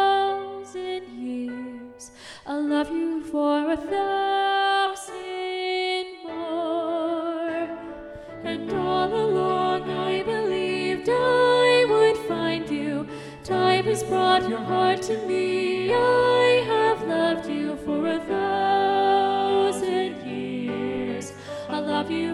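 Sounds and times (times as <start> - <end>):
soprano singing: 0.0 - 22.3.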